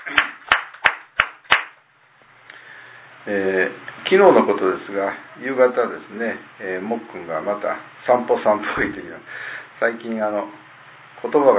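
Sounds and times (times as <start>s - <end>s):
audience clapping: 0.0s - 1.8s
speech: 3.2s - 10.6s, 11.2s - 11.5s.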